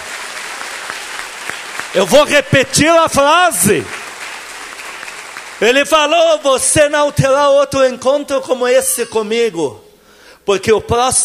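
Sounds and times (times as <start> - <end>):
audience applause: 0.0 - 6.2
speech: 2.0 - 4.0, 5.6 - 9.8, 10.4 - 11.2.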